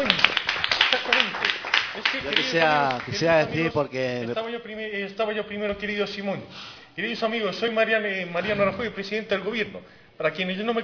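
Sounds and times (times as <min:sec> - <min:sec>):
audience applause at a radio event: 0:00.0 - 0:03.4
speech: 0:02.2 - 0:10.8.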